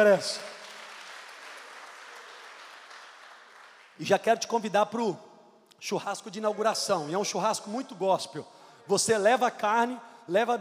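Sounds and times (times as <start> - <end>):
speech: 0.0 - 0.5, 4.0 - 10.5
audience applause: 0.5 - 4.0.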